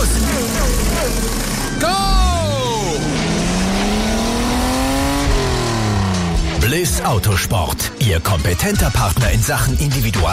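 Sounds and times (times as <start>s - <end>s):
race car number 12 accelerating out of the pit lane: 0.0s - 8.0s
speech: 7.0s - 10.3s.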